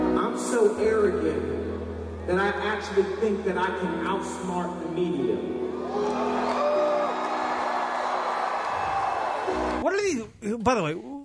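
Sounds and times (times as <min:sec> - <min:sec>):
speech: 0:00.4 - 0:01.6, 0:02.3 - 0:05.6, 0:09.8 - 0:11.1
high whoops: 0:05.8 - 0:09.5
crowd cheering: 0:05.8 - 0:09.8.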